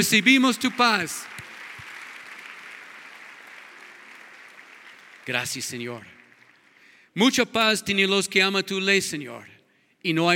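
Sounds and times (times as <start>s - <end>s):
speech: 0.0s - 1.4s, 5.3s - 6.2s, 7.2s - 10.3s
audience applauding: 0.0s - 7.0s.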